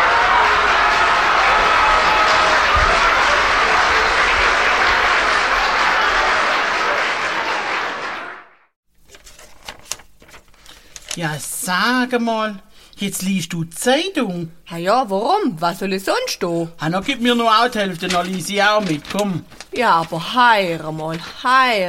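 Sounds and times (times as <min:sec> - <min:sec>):
crowd applause played from a button: 0:00.0 - 0:08.7
speech: 0:11.3 - 0:21.8.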